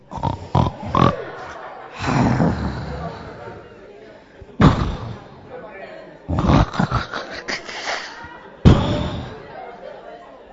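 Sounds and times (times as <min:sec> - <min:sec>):
person imitating loud snoring: 0:00.0 - 0:03.6, 0:04.6 - 0:05.4, 0:06.3 - 0:09.5
laughter: 0:00.0 - 0:10.5.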